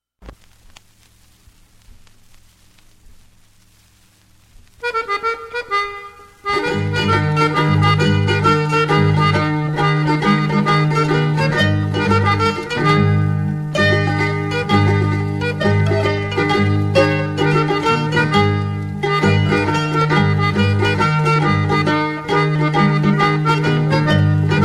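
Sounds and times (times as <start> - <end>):
folk dance music: 0.2 - 24.6.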